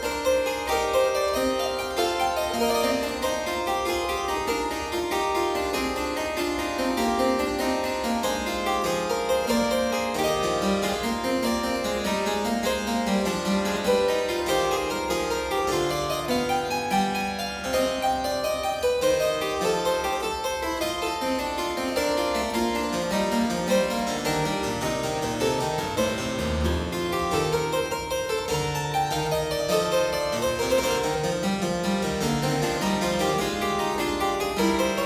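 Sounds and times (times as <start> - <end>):
three-part invention in E major on keyboard: 0.1 - 35.0.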